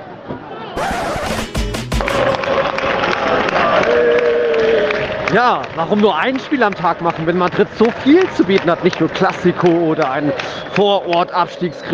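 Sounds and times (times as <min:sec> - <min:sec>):
football stadium crowd cheering: 0:00.0 - 0:11.9
speech: 0:05.3 - 0:11.9.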